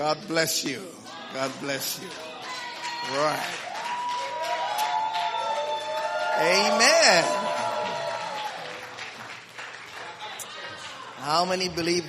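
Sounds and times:
speech: 0.0s - 2.3s, 3.0s - 3.7s, 6.4s - 7.6s, 11.2s - 12.0s
audience clapping and cheering: 1.0s - 11.9s.

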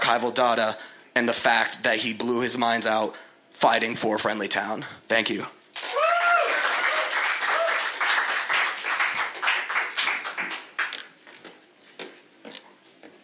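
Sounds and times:
speech: 0.1s - 6.0s
weak audience applause: 5.8s - 11.1s.

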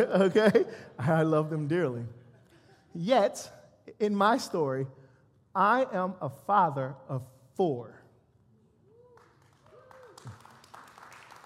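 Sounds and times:
laughter: 0.0s - 1.5s
speech: 0.0s - 2.2s, 2.9s - 5.0s, 5.6s - 8.0s
audience clapping: 9.0s - 11.4s.

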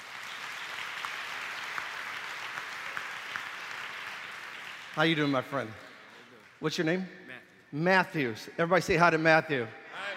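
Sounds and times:
crowd clapping: 0.0s - 6.6s
speech: 5.0s - 5.9s, 6.6s - 10.1s.

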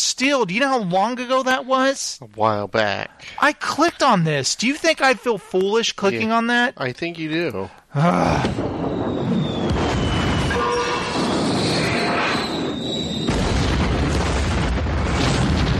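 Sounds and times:
speech: 0.2s - 8.8s
carpet bombing explosions sound effect: 8.4s - 15.7s.

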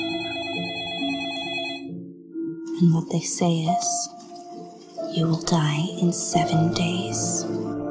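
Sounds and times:
telephone ringing: 0.0s - 2.0s
speech: 2.8s - 4.2s, 5.1s - 7.8s.

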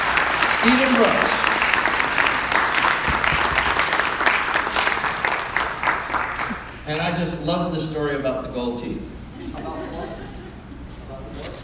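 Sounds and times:
audience applause welcoming a speaker: 0.0s - 6.8s
speech: 0.6s - 1.4s, 6.9s - 10.2s
laughter: 9.3s - 11.1s.

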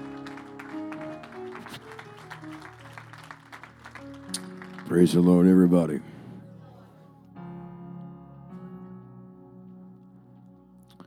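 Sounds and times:
church congregation applause: 0.0s - 6.5s
speech: 4.9s - 6.1s.

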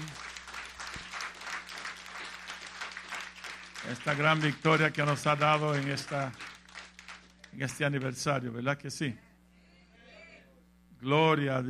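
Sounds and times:
crowd applauding: 0.0s - 8.2s
low steady hum: 0.0s - 11.6s
speech: 3.9s - 6.5s, 7.6s - 9.3s, 11.0s - 11.6s.

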